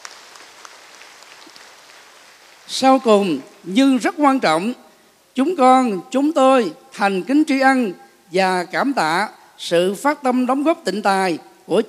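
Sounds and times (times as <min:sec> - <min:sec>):
audience applause at a Buddhist academy anniversary ceremony: 0:00.0 - 0:02.6
speech: 0:02.7 - 0:04.8, 0:05.4 - 0:11.8.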